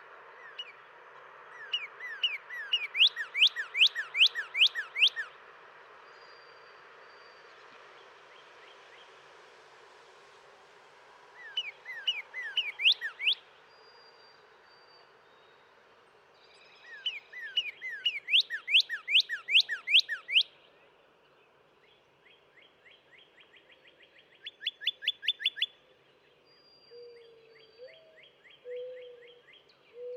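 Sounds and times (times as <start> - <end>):
northern cardinal singing slurred whistles: 1.7 - 5.3, 11.4 - 13.4, 16.8 - 20.5, 24.5 - 25.8.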